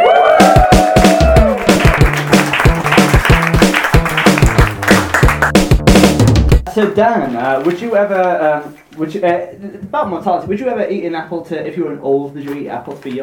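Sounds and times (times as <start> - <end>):
audience cheering: 0.0 - 5.6
speech: 6.8 - 13.2.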